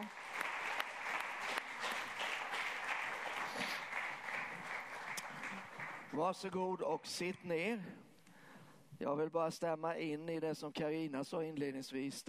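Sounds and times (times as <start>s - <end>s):
audience applause: 0.0s - 6.2s
speech: 6.2s - 8.1s, 9.0s - 12.2s.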